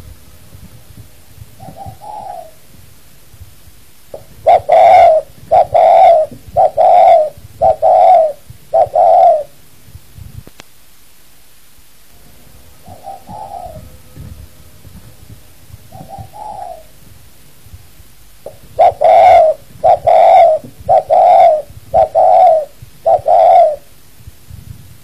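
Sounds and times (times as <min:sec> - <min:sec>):
spotted dove cooing: 0:01.6 - 0:02.8, 0:04.1 - 0:09.6, 0:12.8 - 0:14.3, 0:15.7 - 0:17.2, 0:18.4 - 0:24.0.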